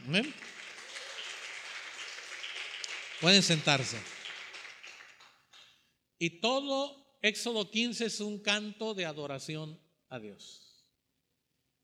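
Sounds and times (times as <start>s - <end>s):
audience applause: 0.0s - 5.7s
speech: 0.1s - 0.6s, 3.2s - 4.1s, 6.2s - 10.7s.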